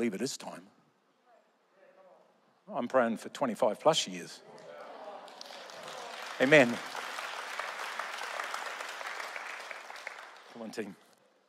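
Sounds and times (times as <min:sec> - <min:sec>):
speech: 0:00.0 - 0:00.7, 0:02.7 - 0:04.6, 0:06.4 - 0:06.9, 0:10.6 - 0:11.0
crowd applause: 0:04.7 - 0:10.9.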